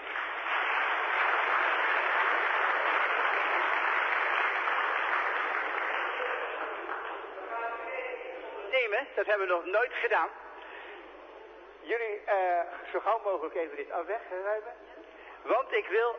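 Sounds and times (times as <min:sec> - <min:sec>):
audience applause for a choir: 0:00.0 - 0:07.8
speech: 0:09.0 - 0:10.4, 0:11.9 - 0:16.1.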